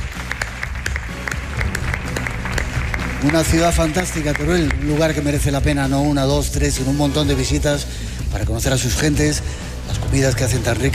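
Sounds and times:
live theater audience applause: 0:00.0 - 0:05.6
speech: 0:03.2 - 0:10.9.

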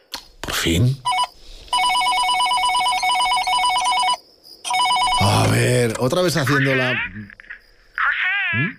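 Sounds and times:
speech: 0:00.7 - 0:01.1, 0:06.0 - 0:07.4, 0:08.5 - 0:08.7
telephone ringing with an electronic warble: 0:01.1 - 0:05.8.

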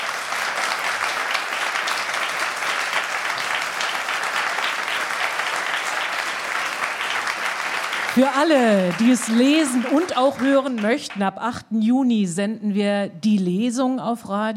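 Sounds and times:
audience applause: 0:00.0 - 0:11.4
speech: 0:08.2 - 0:14.5.

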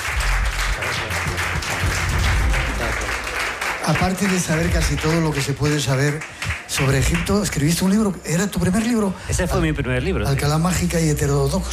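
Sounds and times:
audience applause: 0:00.0 - 0:08.0
speech: 0:03.9 - 0:11.7.

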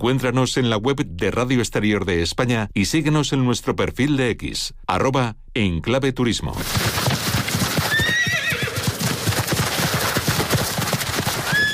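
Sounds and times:
speech: 0:00.0 - 0:07.1
horse hooves clip-clopping: 0:06.6 - 0:11.7
horse whinnying: 0:07.4 - 0:09.4, 0:11.3 - 0:11.7.

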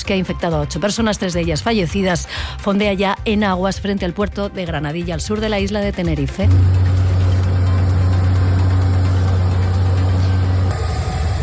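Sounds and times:
speech: 0:00.0 - 0:06.9
helicopters flying over the area: 0:06.5 - 0:11.4.

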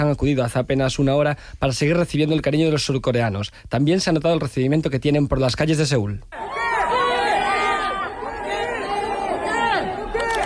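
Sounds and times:
speech: 0:00.0 - 0:06.6
crowd of fans shouting a player's name: 0:06.4 - 0:10.4.

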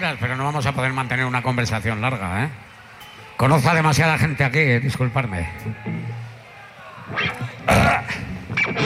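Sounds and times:
speech: 0:00.0 - 0:02.7, 0:03.4 - 0:06.1
burp: 0:07.6 - 0:08.8.

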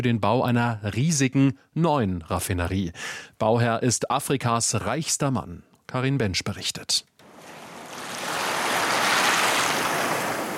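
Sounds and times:
speech: 0:00.0 - 0:07.1
ocean waves washing onto an island shore: 0:07.2 - 0:10.5.

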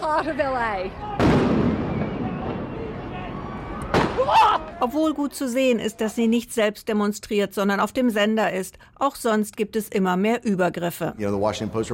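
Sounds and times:
speech: 0:00.1 - 0:01.6, 0:04.2 - 0:11.9
rubber bullet shot fired: 0:01.2 - 0:02.6, 0:03.9 - 0:04.3.

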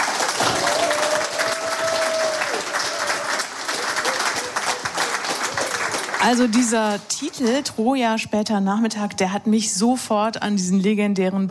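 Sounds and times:
audience applause: 0:00.0 - 0:07.5
speech: 0:06.2 - 0:11.4.

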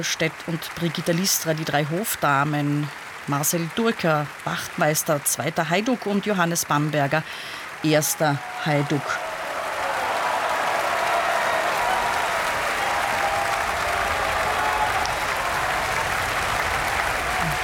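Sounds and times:
speech: 0:00.0 - 0:09.3
opera audience applause: 0:00.4 - 0:05.0, 0:06.8 - 0:17.6.

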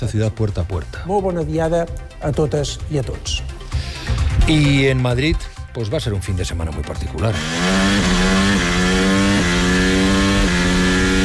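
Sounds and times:
speech: 0:00.0 - 0:03.6, 0:04.5 - 0:08.3
Formula 1 engine screaming through gear changes: 0:07.3 - 0:11.2.

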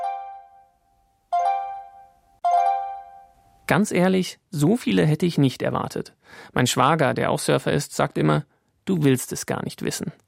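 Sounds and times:
smartphone app notification chime: 0:00.0 - 0:03.4
speech: 0:03.7 - 0:10.2.

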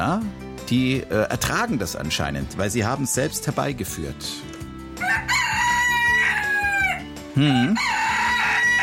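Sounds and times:
speech: 0:00.0 - 0:05.6, 0:07.4 - 0:08.0
rooster crowing: 0:05.0 - 0:08.8.

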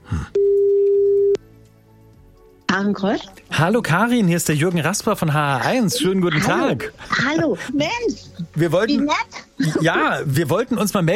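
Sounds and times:
telephone line tone on an outgoing call: 0:00.4 - 0:01.4
speech: 0:02.8 - 0:11.1.

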